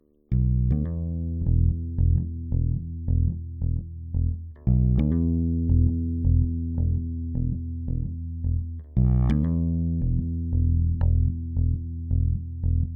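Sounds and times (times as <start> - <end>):
bass intro: 0.3 - 12.9.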